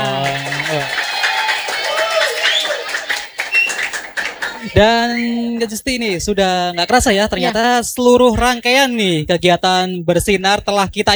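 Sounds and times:
audience applause: 0:00.0 - 0:05.6
laughter: 0:00.0 - 0:07.6
speech: 0:04.7 - 0:11.1.

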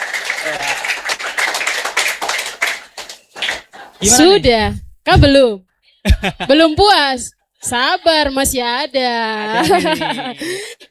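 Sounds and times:
audience applause: 0:00.0 - 0:04.4
laughter: 0:00.0 - 0:04.7, 0:06.1 - 0:06.8, 0:09.2 - 0:10.8
speech: 0:00.4 - 0:00.9, 0:04.0 - 0:10.8.

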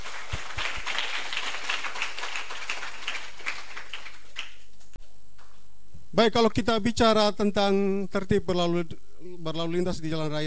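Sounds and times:
students clapping hands: 0:00.0 - 0:05.0
speech: 0:06.2 - 0:10.4.

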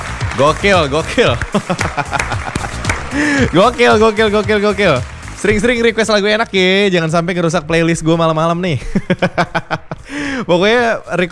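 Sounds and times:
applause: 0:00.0 - 0:06.1
laughter: 0:00.0 - 0:11.2
speech: 0:00.4 - 0:11.2.

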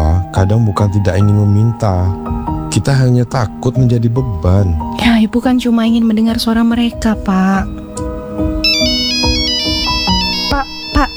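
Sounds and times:
speech: 0:00.4 - 0:08.6
mobile phone ringtone for an incoming call, electronic melody over low percussive thumps: 0:08.0 - 0:11.1.

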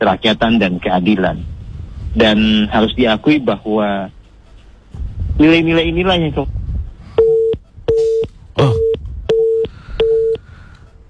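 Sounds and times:
speech: 0:00.0 - 0:04.2, 0:04.9 - 0:06.6, 0:08.6 - 0:08.9
telephone busy signal after a dropped call: 0:07.2 - 0:10.4.

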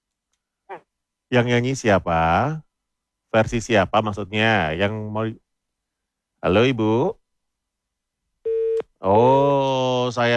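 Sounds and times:
speech: 0:00.7 - 0:02.7, 0:03.3 - 0:05.4, 0:06.4 - 0:07.2, 0:09.0 - 0:10.3
telephone busy tone after a call is cut off: 0:08.5 - 0:08.8.

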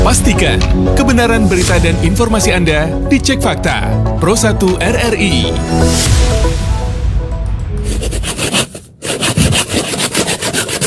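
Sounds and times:
speech: 0:00.1 - 0:06.6
saw cutting bamboo to sharpen its tip: 0:07.9 - 0:10.8.

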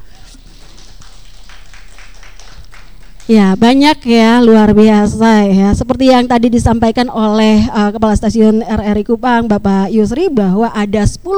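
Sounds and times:
audience applause: 0:00.0 - 0:03.3
speech: 0:03.3 - 0:11.3.

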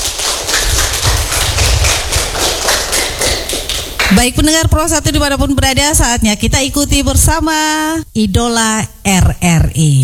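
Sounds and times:
children applauding: 0:00.0 - 0:04.2
speech: 0:04.1 - 0:10.0.

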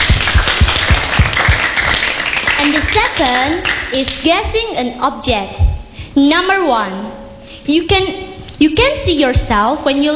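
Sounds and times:
small group clapping: 0:00.0 - 0:04.3
speech: 0:02.8 - 0:05.6, 0:06.2 - 0:10.1.

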